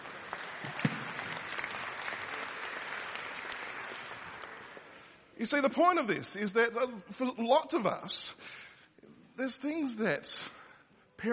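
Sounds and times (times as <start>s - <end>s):
audience clapping: 0.0s - 5.2s
speech: 5.4s - 8.6s, 9.4s - 10.6s.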